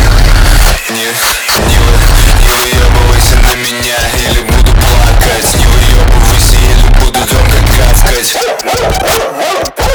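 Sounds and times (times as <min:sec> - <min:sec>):
backing music: 0:00.0 - 0:09.9
dog barking and yipping: 0:08.2 - 0:09.9.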